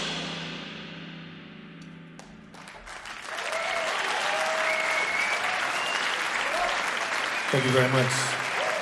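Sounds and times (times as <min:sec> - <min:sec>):
audience applause after a live jazz performance: 0:02.5 - 0:08.7
faint audience whistles and cheers: 0:03.2 - 0:08.7
speech: 0:07.6 - 0:08.4.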